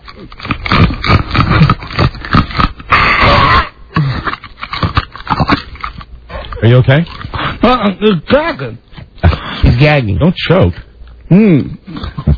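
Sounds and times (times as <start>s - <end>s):
chewing ice cubes: 0.0s - 7.6s
speech: 6.6s - 8.8s, 9.7s - 12.3s.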